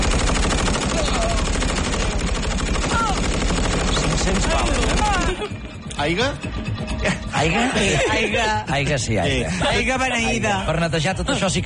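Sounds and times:
machine gun fire: 0.0 - 5.4
laughter: 4.4 - 5.7, 7.0 - 11.6
speech: 6.0 - 6.5, 7.4 - 11.6.

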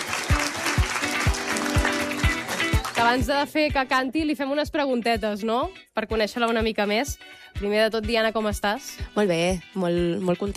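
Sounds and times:
audience applause: 0.0 - 3.3
speech: 3.0 - 10.5.

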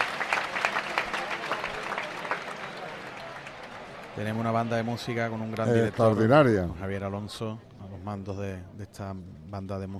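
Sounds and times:
crowd applause for a music band: 0.0 - 6.7
speech: 4.2 - 9.9.

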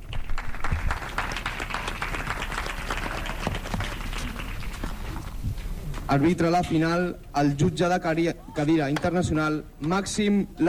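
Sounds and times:
audience applause: 0.0 - 5.4
speech: 6.1 - 10.6.

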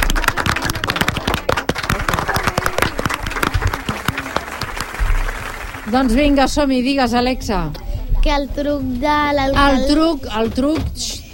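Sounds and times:
audience applause: 0.0 - 6.6
speech: 5.9 - 11.2.

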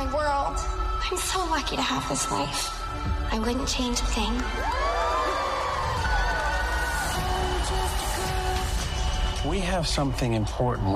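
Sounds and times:
speech: 1.1 - 4.9, 9.4 - 10.9
party crowd cheering and whooping: 4.2 - 10.9.

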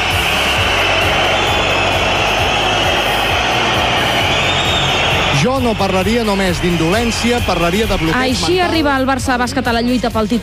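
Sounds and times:
basketball arena crowd whistling: 0.0 - 8.7
speech: 5.5 - 10.4.

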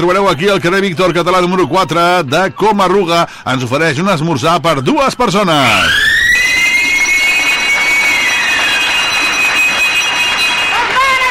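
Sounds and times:
speech: 0.0 - 6.1
bell ringing to end a round of a bingo game: 6.4 - 11.3.

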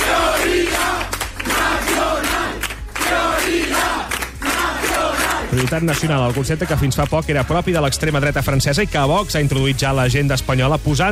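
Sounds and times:
crowd shouting a chant at party headquarters: 0.0 - 5.6
speech: 5.6 - 11.1.

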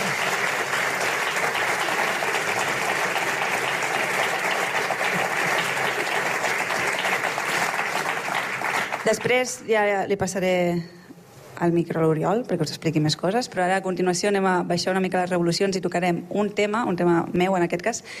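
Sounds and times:
sustained audience applause: 0.0 - 9.5
speech: 9.1 - 11.0, 11.6 - 18.1.

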